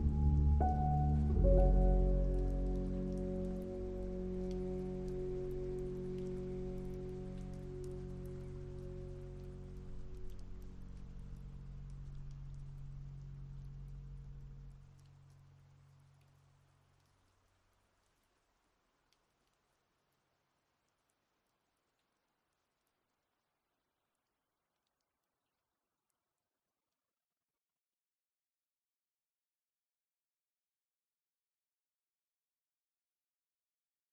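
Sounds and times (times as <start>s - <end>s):
very sad piano song: 0.0s - 10.3s.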